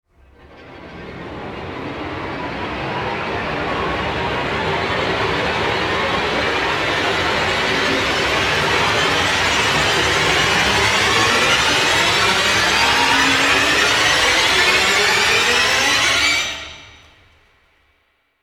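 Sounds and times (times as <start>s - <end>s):
rising sound: 0.5s - 17.1s.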